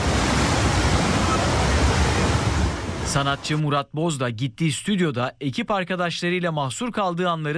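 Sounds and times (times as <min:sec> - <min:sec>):
floodwater rushing over the Ayazağa road in Istanbul after heavy rain: 0:00.0 - 0:03.7
speech: 0:03.1 - 0:07.5.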